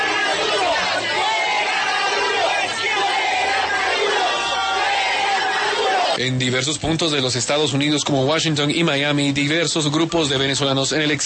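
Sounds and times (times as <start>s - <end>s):
crowd shouting in street confrontation: 0.0s - 6.2s
speech: 6.2s - 11.2s.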